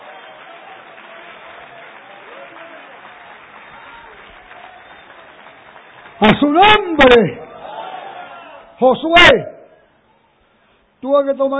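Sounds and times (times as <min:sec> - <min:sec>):
audience applause: 0:00.0 - 0:08.6
speech: 0:06.2 - 0:07.4, 0:08.8 - 0:09.5, 0:11.1 - 0:11.5.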